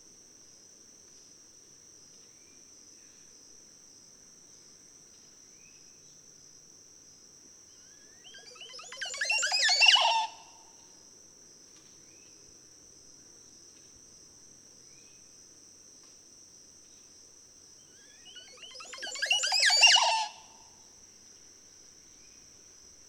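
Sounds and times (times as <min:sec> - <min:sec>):
Montezuma oropendola calling: 0:08.2 - 0:10.5, 0:18.3 - 0:20.6.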